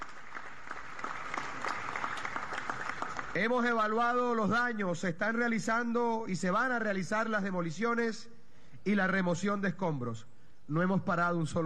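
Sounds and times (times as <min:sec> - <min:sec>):
audience applause: 0:00.0 - 0:03.4
speech: 0:03.4 - 0:11.6.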